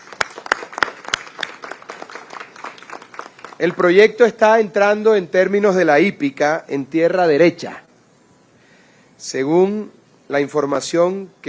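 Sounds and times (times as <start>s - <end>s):
audience applause: 0.0s - 3.8s
speech: 3.6s - 7.8s, 9.2s - 11.4s.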